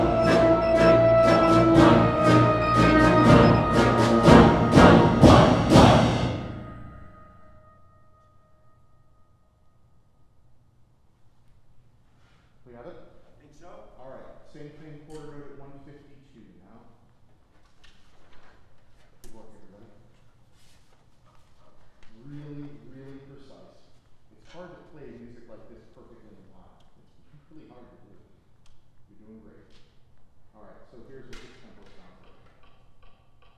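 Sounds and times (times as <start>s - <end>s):
musicians playing: 0.0s - 7.4s
drone: 0.0s - 7.5s.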